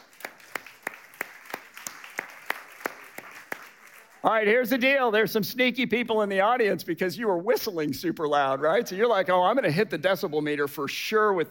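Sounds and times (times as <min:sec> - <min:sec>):
audience applause: 0:00.0 - 0:04.3
speech: 0:04.2 - 0:11.5.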